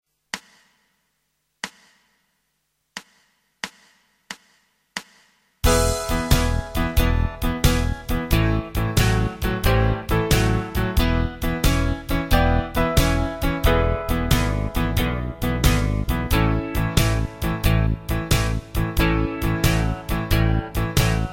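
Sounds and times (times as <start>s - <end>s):
blues guitar backing: 5.7s - 21.3s.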